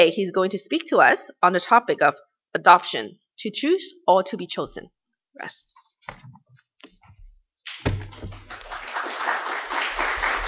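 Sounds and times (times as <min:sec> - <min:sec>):
speech: 0:00.0 - 0:06.4
audience applause: 0:07.7 - 0:10.4.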